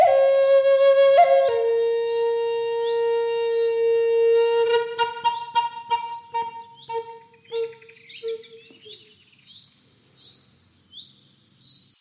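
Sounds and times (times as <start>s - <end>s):
Lakota flute in the key of B playing high: 0.0s - 7.7s.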